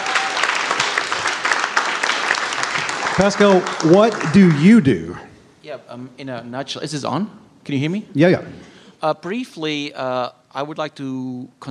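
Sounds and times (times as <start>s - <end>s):
audience applause: 0.0s - 5.2s
speech: 3.2s - 11.7s.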